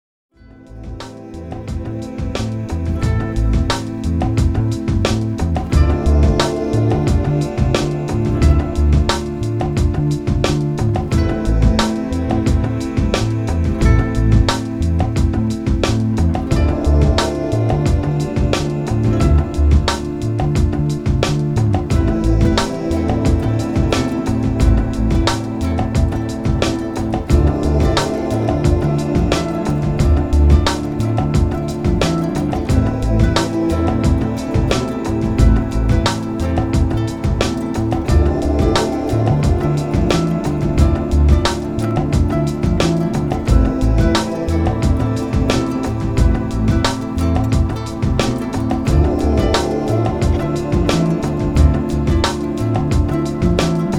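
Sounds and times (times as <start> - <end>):
beats: 0.6 - 53.9
church choir singing: 0.7 - 53.9.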